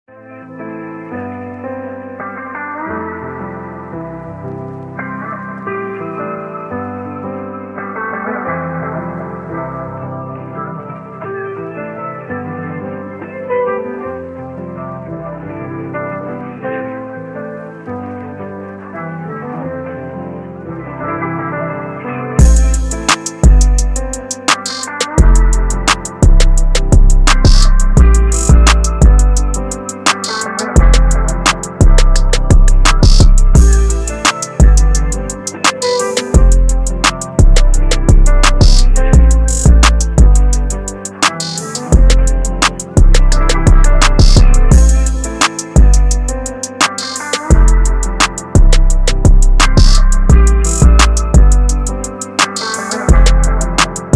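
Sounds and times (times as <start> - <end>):
instrumental music: 0.1 - 54.1.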